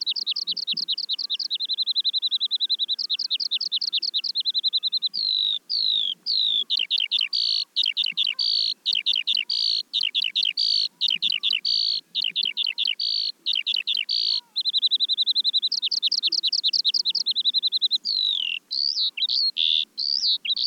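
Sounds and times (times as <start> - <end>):
Eurasian skylark singing: 0.0 - 20.6.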